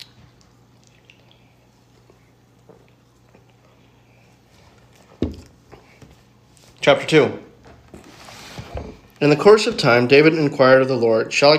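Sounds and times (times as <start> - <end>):
person sipping a drink: 0.0 - 4.9
speech: 6.8 - 7.5, 9.2 - 11.5.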